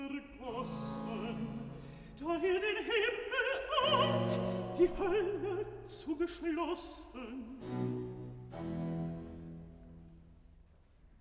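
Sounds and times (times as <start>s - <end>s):
cantata recitative: 0.0s - 8.7s.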